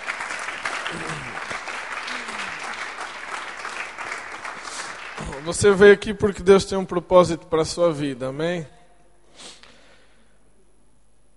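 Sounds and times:
audience applause: 0.0s - 5.9s
speech: 0.9s - 1.4s, 5.4s - 8.8s.

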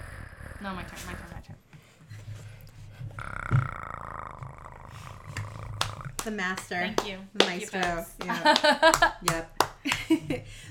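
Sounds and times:
person imitating a purr with their voice: 0.0s - 1.5s, 3.2s - 6.2s
speech: 0.6s - 1.6s, 6.2s - 10.6s.

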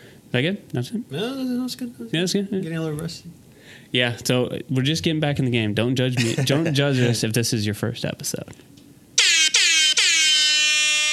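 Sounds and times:
speech: 0.3s - 8.8s
loud air horn blasts: 9.2s - 11.1s.

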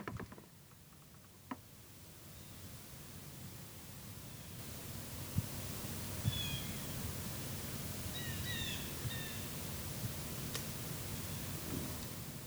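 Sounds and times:
steady hissing woodland ambience: 0.8s - 12.4s
soft rustling of dry leaves: 4.2s - 12.4s
short high bird calls: 6.0s - 12.1s.

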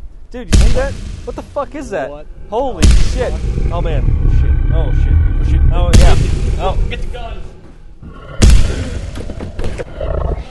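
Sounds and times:
speech: 0.3s - 7.5s
monster roaring outside in a snowy cornfield: 2.2s - 10.4s.

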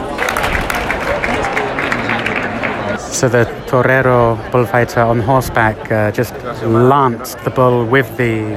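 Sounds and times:
bullfight crowd applauding: 0.1s - 3.0s
speech: 3.2s - 8.5s.

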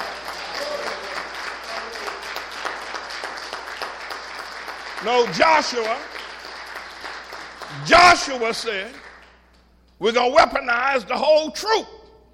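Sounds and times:
audience applause: 0.0s - 9.4s
speech: 5.0s - 6.2s, 7.8s - 9.0s, 10.0s - 12.0s.

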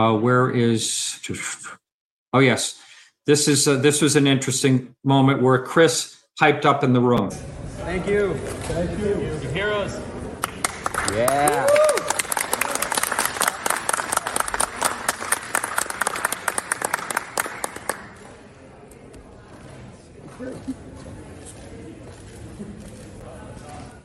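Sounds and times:
speech: 0.0s - 10.1s, 11.1s - 11.8s
audience applause in a hearing room: 10.4s - 18.5s.

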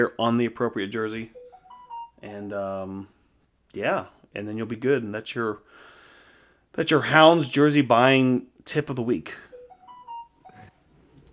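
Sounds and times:
speech: 0.0s - 1.4s, 2.2s - 5.9s, 6.7s - 9.4s
phone notification alert: 1.3s - 2.2s, 9.5s - 10.7s.

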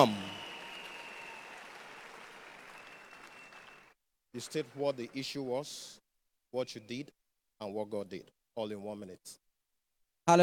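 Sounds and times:
speech: 0.0s - 0.2s, 4.4s - 9.4s
audience clapping: 0.0s - 5.6s.

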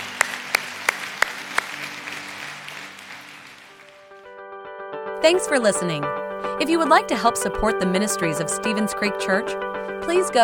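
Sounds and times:
audience applauding: 0.0s - 4.3s
speech: 5.2s - 10.4s.

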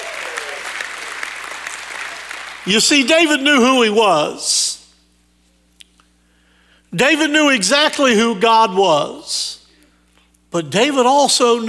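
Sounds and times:
audience shouting: 0.0s - 1.3s
audience hand clapping: 0.0s - 3.0s
speech: 2.6s - 4.8s, 6.9s - 9.6s, 10.5s - 11.6s.

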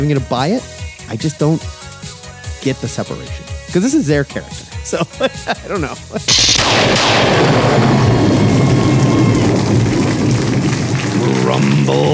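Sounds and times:
speech: 0.0s - 1.8s, 2.6s - 8.4s, 11.5s - 12.1s
laughter: 4.9s - 6.4s
thunderous boom sound effect for blood dripping into a Pandora pit: 6.3s - 11.9s
rain-like hiss and crackle: 8.4s - 12.1s.

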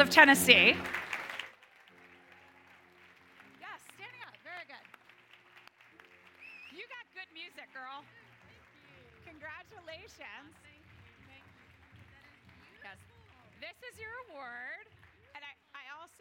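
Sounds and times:
audience clapping: 0.0s - 16.1s
whoops and cheers: 1.8s - 2.8s.

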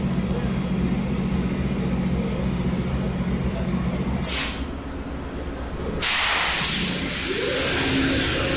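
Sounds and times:
GE Genesis diesel locomotive engine: 0.0s - 8.5s.

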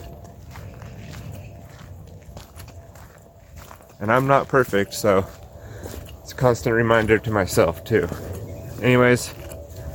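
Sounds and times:
footsteps on a morning walk: 0.0s - 9.9s
speech: 4.0s - 5.4s, 6.3s - 9.4s.

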